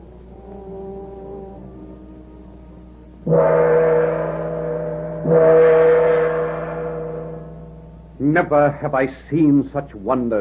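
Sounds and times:
huge gong struck with a sword: 0:03.2 - 0:08.5
speech: 0:03.3 - 0:03.8, 0:08.3 - 0:10.3.

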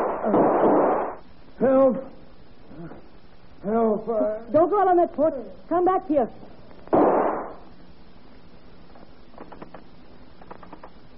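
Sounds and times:
gunshot sound effect from a radio drama: 0:00.0 - 0:01.2, 0:06.9 - 0:07.7
speech: 0:01.6 - 0:02.2, 0:03.6 - 0:06.6.

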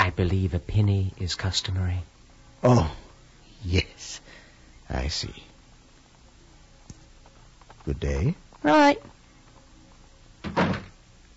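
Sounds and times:
speech: 0:00.2 - 0:03.0, 0:03.6 - 0:04.3, 0:04.9 - 0:05.5, 0:07.9 - 0:09.1
door closing: 0:10.4 - 0:11.0.

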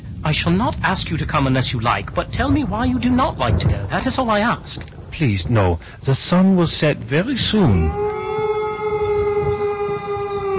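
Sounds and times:
low rumbling noise: 0:00.0 - 0:10.5
speech: 0:00.3 - 0:08.0
wolf howling: 0:07.4 - 0:10.5.

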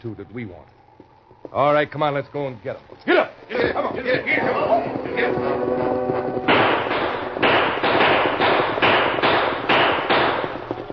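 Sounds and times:
speech: 0:00.0 - 0:00.8, 0:01.5 - 0:06.1
gunshots: 0:04.4 - 0:10.9.

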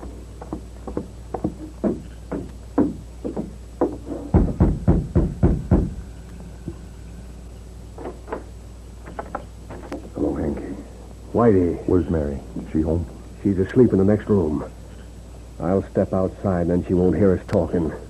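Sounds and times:
knocking on a door: 0:00.5 - 0:06.0
speech: 0:11.4 - 0:14.8, 0:15.6 - 0:18.0.

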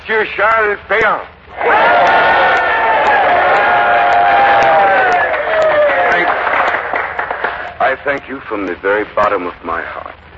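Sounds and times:
speech: 0:00.1 - 0:02.5, 0:07.9 - 0:10.2
crowd cheering a man's arrival: 0:01.5 - 0:08.0.

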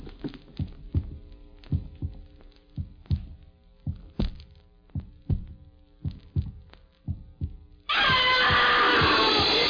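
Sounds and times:
human heartbeat heard through a stethoscope: 0:00.0 - 0:09.6.

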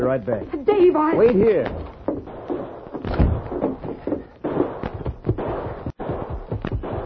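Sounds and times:
speech: 0:00.1 - 0:02.2
gunfire on Main Street: 0:01.7 - 0:07.0.

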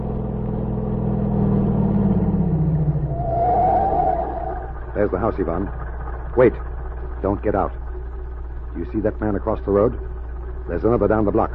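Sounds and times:
car engine accelerating: 0:00.0 - 0:09.4
faint high whine: 0:02.6 - 0:11.5
speech: 0:05.0 - 0:05.8, 0:06.4 - 0:07.8, 0:08.7 - 0:11.5.

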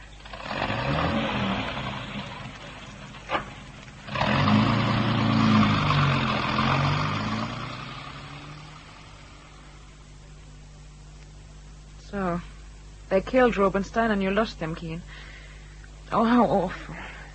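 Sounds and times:
car driving off: 0:00.0 - 0:10.1
speech: 0:13.2 - 0:15.3, 0:16.1 - 0:17.1.

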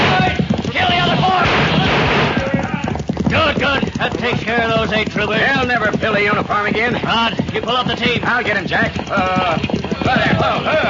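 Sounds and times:
volley of gunfire in a radio drama wagon ambush: 0:00.0 - 0:02.6
people shouting: 0:00.0 - 0:03.6, 0:09.1 - 0:10.8
speech: 0:04.9 - 0:10.8.

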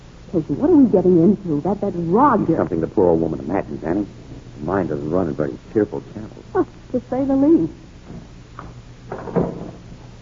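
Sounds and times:
speech: 0:00.3 - 0:08.3
door opening: 0:08.0 - 0:10.0.

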